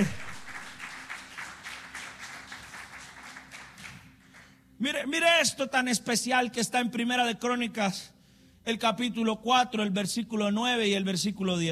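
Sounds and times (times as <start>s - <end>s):
audience applause: 0.0s - 4.4s
speech: 4.8s - 11.6s.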